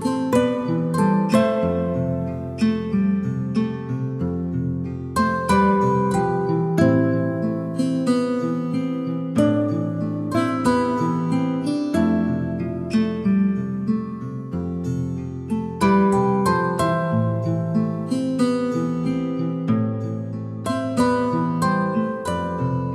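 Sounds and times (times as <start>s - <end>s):
relaxing calm acoustic guitar music: 0.0s - 22.9s.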